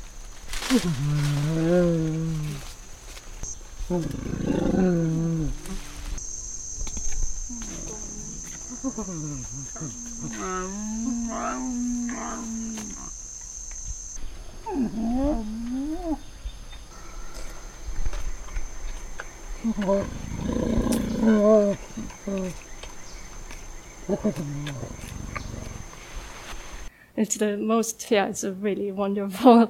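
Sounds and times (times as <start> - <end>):
speech: 0.7 - 2.7, 3.9 - 5.6, 8.8 - 13.0, 14.7 - 16.3, 19.6 - 22.6, 24.1 - 25.2, 27.2 - 29.6
animals humming in chorus while feeding: 3.4 - 26.9.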